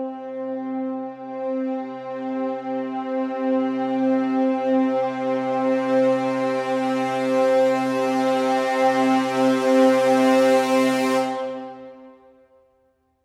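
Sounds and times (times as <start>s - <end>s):
brass crescendo swell on high C: 0.1s - 12.6s.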